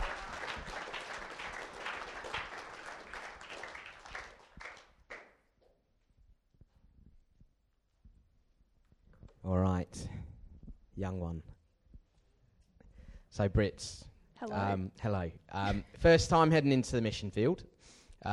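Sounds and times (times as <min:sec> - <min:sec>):
round of applause: 0:00.0 - 0:05.5
speech: 0:11.0 - 0:11.5, 0:13.4 - 0:18.3.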